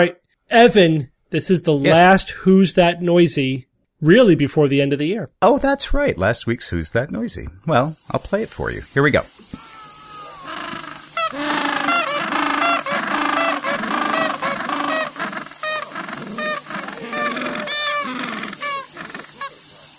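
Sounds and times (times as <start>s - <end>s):
speech: 0.0s - 9.6s
gentoo penguins calling: 9.5s - 19.7s.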